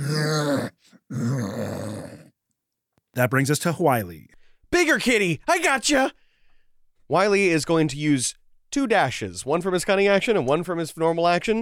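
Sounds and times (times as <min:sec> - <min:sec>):
voice imitating a muffled dragon moaning: 0:00.0 - 0:02.4
speech: 0:03.2 - 0:06.2, 0:07.1 - 0:11.6.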